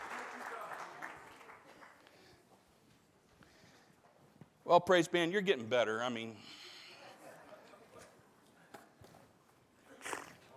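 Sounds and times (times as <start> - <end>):
applause: 0.0 - 2.4
speech: 4.7 - 6.6.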